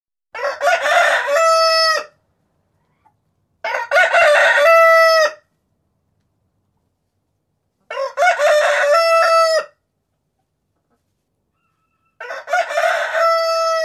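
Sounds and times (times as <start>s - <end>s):
rooster crowing: 0.3s - 2.2s, 3.6s - 5.5s, 7.9s - 9.8s, 11.6s - 13.8s.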